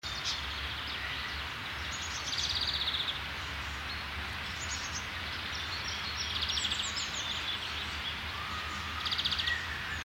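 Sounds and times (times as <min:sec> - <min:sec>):
birds: 0:00.0 - 0:10.0.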